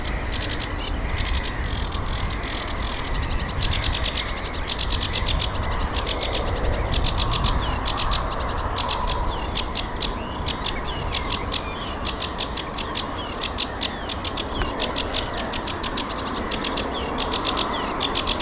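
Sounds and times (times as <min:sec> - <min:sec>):
sedge warbler: 0:00.0 - 0:18.4.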